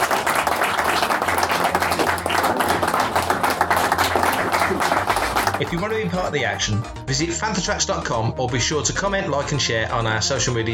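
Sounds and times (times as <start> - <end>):
crowd applause: 0.0 - 6.4
speech: 5.6 - 10.7.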